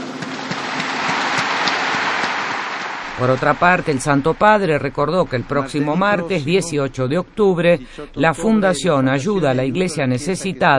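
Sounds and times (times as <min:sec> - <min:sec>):
crowd applause: 0:00.0 - 0:06.5
speech: 0:03.2 - 0:10.7.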